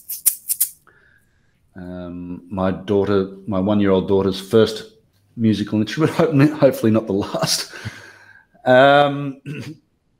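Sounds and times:
egg shaker being shaken in a song: 0:00.0 - 0:00.8
speech: 0:01.8 - 0:08.0, 0:08.6 - 0:09.8.

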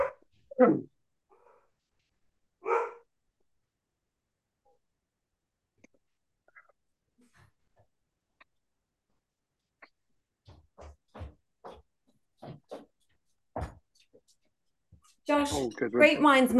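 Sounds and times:
dog barking at the door: 0:00.0 - 0:00.2, 0:02.6 - 0:03.1
speech: 0:00.6 - 0:00.9, 0:15.5 - 0:16.5.

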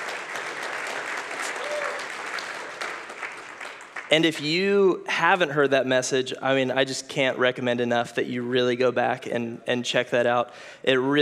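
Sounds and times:
audience applause: 0:00.0 - 0:04.4
speech: 0:04.1 - 0:11.2.

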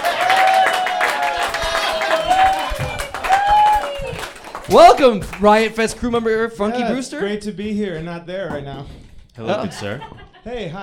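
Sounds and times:
welcoming applause: 0:00.0 - 0:05.8
speech: 0:04.7 - 0:10.8
laughter: 0:09.4 - 0:10.7.

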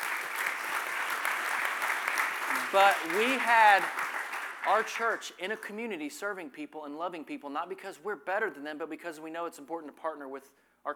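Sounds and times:
audience applause: 0:00.0 - 0:05.2
speech: 0:02.7 - 0:04.0, 0:04.6 - 0:10.9.

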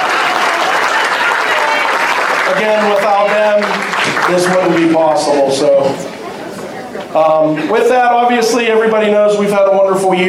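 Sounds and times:
audience applause: 0:00.0 - 0:05.6
speech: 0:02.5 - 0:03.0, 0:04.3 - 0:06.1, 0:07.1 - 0:10.2.

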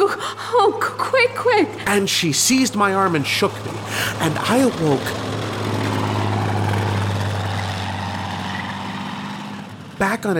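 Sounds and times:
roaring tank: 0:01.4 - 0:10.3
speech: 0:01.9 - 0:05.3.

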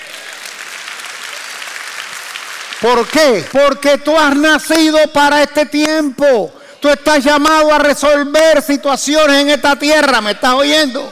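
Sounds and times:
audience applause: 0:00.0 - 0:04.4
speech: 0:02.8 - 0:11.1.

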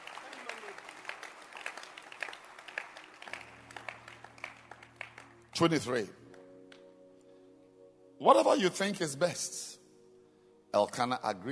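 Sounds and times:
audience clapping hands: 0:00.0 - 0:06.9
speech: 0:05.6 - 0:06.2, 0:08.2 - 0:09.7, 0:10.8 - 0:11.4.

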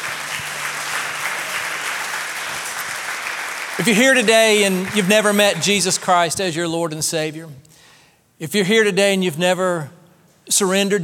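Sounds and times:
crowd applause: 0:00.0 - 0:06.4
speech: 0:03.8 - 0:07.7, 0:08.4 - 0:11.0.

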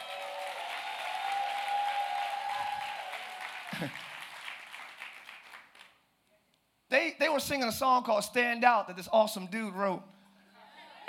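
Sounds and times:
scattered cheers: 0:00.0 - 0:03.7
crowd applauding: 0:00.0 - 0:06.0
speech: 0:03.7 - 0:04.1, 0:07.2 - 0:10.1.

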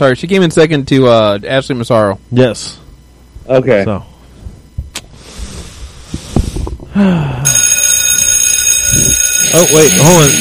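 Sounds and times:
speech: 0:00.0 - 0:02.8, 0:03.5 - 0:04.1, 0:07.0 - 0:07.7, 0:08.9 - 0:10.3
loud shrill bell ringing: 0:07.5 - 0:10.3.

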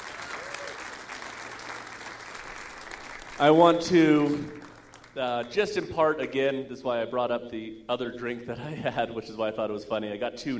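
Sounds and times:
audience applause: 0:00.0 - 0:05.9
speech: 0:03.4 - 0:04.6, 0:05.2 - 0:10.5.

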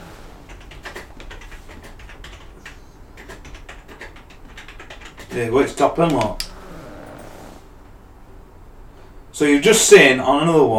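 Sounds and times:
typing a Google search on a computer keyboard: 0:00.5 - 0:06.6
speech: 0:05.3 - 0:06.5, 0:09.4 - 0:10.7.

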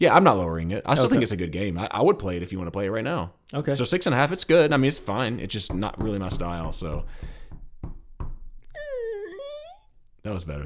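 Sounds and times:
speech: 0:00.0 - 0:07.4, 0:10.2 - 0:10.6
door closing effect thuds: 0:04.5 - 0:08.8.

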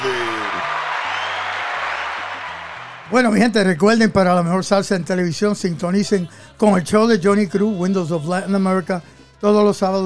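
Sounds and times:
audience applause: 0:00.0 - 0:03.9
speech: 0:03.1 - 0:10.0.

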